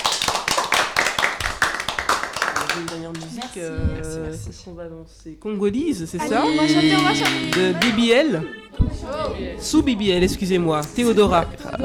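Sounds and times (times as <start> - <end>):
audience clapping: 0.0 - 3.7, 6.7 - 8.2
speech: 2.8 - 11.8
laughter: 6.2 - 8.5.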